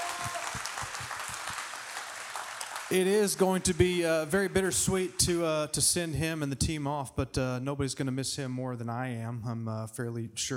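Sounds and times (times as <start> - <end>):
audience clapping: 0.0 - 5.8
speech: 2.9 - 10.5.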